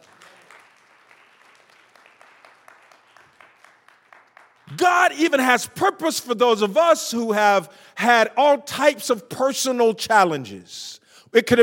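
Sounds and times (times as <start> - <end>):
crowd applauding: 0.0 - 4.8
speech: 4.7 - 11.6.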